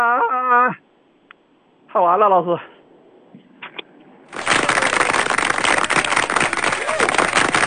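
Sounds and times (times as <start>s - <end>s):
speech: 2.0s - 2.7s
audience applause: 4.3s - 7.6s.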